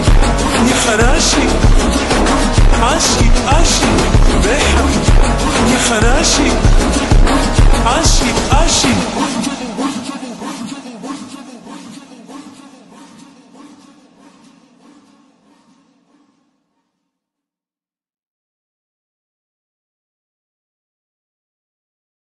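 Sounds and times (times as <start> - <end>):
slowed phonk remix with reverb: 0.0 - 16.1.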